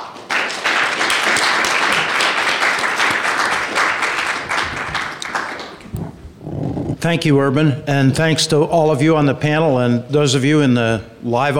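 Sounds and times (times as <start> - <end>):
audience applause: 0.0 - 6.0
speech: 7.0 - 11.5.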